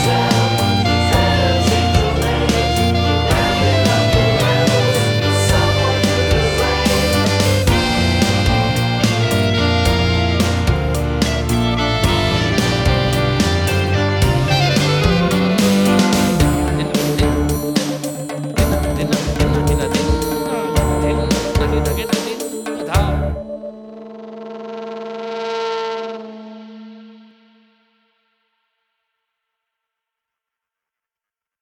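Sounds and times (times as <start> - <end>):
four-string Epiphone guitar: 0.0 - 24.0.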